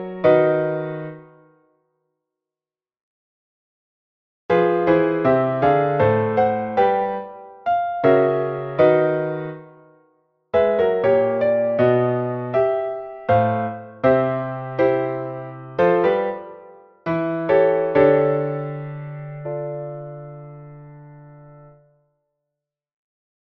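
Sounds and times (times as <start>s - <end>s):
piano recitative: 0.0s - 1.6s, 4.5s - 10.0s, 10.6s - 21.9s.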